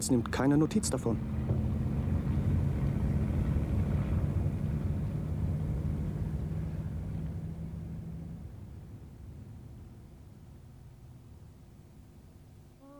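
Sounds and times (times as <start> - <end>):
speech: 0.0 - 1.5
engine noise: 0.0 - 12.0.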